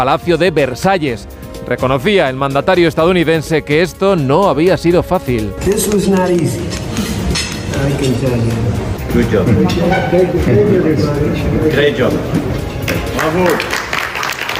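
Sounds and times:
speech: 0.0s - 6.8s, 7.8s - 13.8s
applause at signing: 5.6s - 7.8s, 12.8s - 14.5s
crowd of voices: 5.6s - 13.9s.

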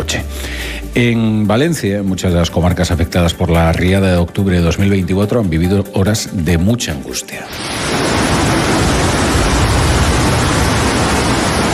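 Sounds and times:
speech: 1.0s - 8.3s
heavy rain downpour in Torrent: 7.5s - 11.7s.

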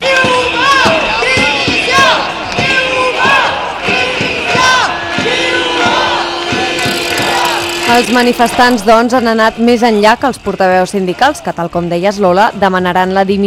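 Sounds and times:
protest crowd chanting slogans: 0.0s - 11.7s
sustained tone: 5.2s - 10.7s
speech: 7.9s - 13.4s.

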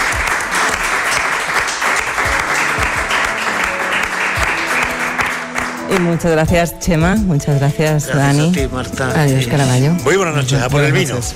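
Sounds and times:
audience applause: 0.0s - 6.2s
speech: 5.9s - 11.3s.

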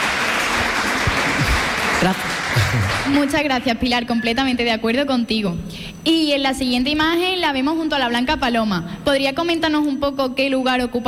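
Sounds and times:
audience applause: 0.0s - 3.4s
speech: 2.0s - 11.0s.

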